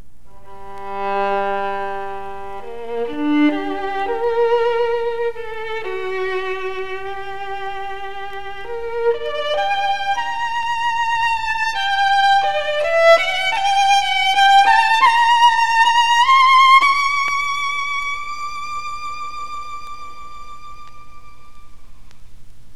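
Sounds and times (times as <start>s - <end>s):
bowed Guarneri string instrument: 0.0s - 22.2s.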